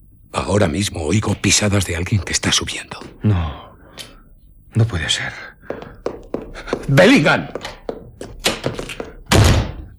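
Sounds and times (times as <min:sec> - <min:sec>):
speech: 0:00.5 - 0:04.1, 0:04.7 - 0:05.8, 0:06.6 - 0:07.8
door slammed shut: 0:08.4 - 0:09.9.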